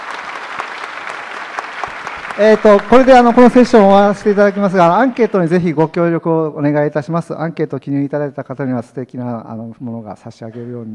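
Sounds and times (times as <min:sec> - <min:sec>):
audience applause for three speakers at a Japanese conference session: 0:00.0 - 0:06.0
speech: 0:02.4 - 0:10.9.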